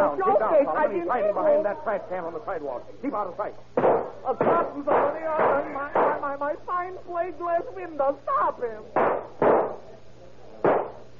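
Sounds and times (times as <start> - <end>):
speech: 0.2 - 9.9
gunshots: 3.8 - 6.2, 9.0 - 9.9, 10.6 - 11.1.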